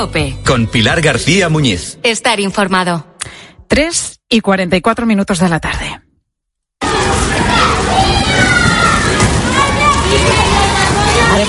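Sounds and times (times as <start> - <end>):
speech: 0.0 - 3.1, 3.7 - 6.0
many children playing in a school playground: 6.8 - 11.4.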